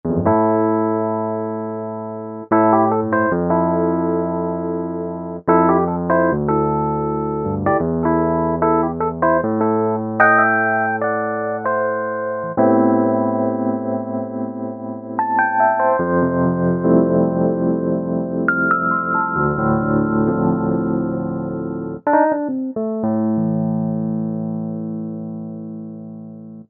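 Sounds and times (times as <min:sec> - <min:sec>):
vintage electric piano: 0:00.0 - 0:26.6.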